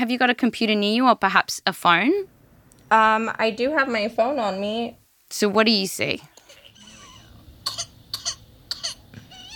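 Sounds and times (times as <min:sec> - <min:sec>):
speech: 0:00.0 - 0:06.3
baby with whooping cough coughing: 0:06.7 - 0:09.5
baby wheezy whimpering breath: 0:08.8 - 0:09.5.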